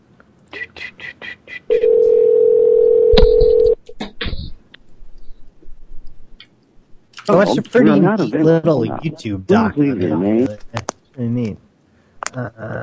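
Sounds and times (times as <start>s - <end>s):
telephone touch-tone dialing beeps: 1.7s - 3.8s
brief beeps: 3.1s - 3.8s
speech: 7.3s - 11.6s, 12.4s - 12.8s.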